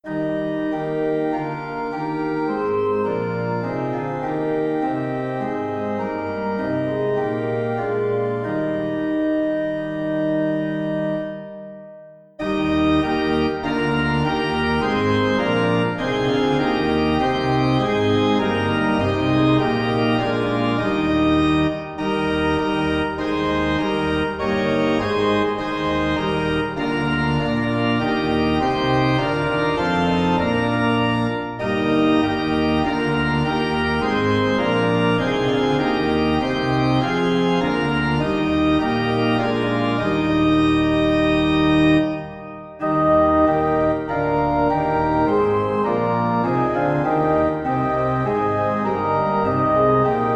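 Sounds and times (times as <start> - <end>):
organ: 0.0 - 50.3.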